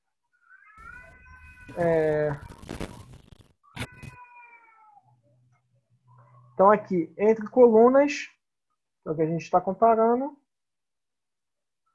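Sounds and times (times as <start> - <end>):
child crying: 0.5 - 2.4, 3.8 - 5.2
speech: 1.7 - 2.5, 6.6 - 8.4, 9.0 - 10.4.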